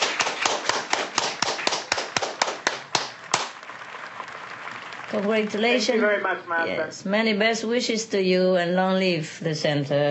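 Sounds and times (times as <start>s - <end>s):
audience clapping hands: 0.0s - 6.6s
speech: 5.1s - 10.0s.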